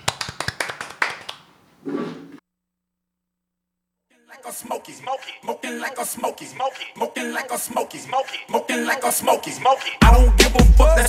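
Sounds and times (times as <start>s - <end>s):
hand clapping: 0.0s - 2.4s
speech: 4.6s - 11.0s.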